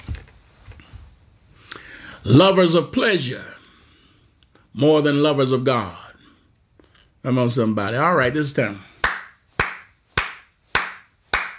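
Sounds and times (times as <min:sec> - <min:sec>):
speech: 0:02.2 - 0:03.5, 0:04.8 - 0:06.0, 0:07.2 - 0:08.9
person clapping hands: 0:09.0 - 0:11.5.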